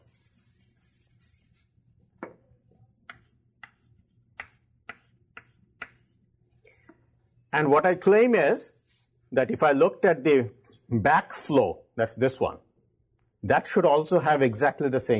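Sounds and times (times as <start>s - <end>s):
handwriting strokes: 0.0s - 1.9s, 2.7s - 6.8s
speech: 7.6s - 12.7s, 13.4s - 15.1s.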